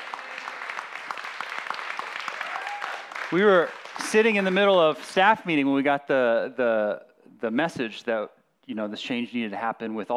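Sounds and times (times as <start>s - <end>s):
audience applause: 0.0s - 5.2s
speech: 3.3s - 10.1s.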